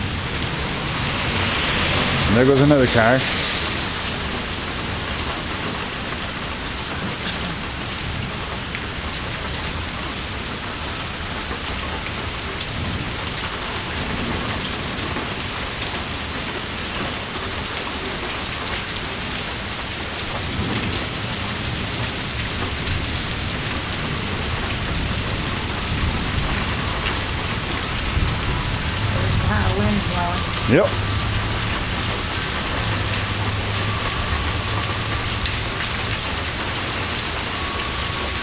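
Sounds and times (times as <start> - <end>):
low rumbles of thunder: 0.0 - 8.5, 20.4 - 38.4
heavy rain: 0.0 - 38.4
speech: 2.3 - 3.4, 30.8 - 31.0.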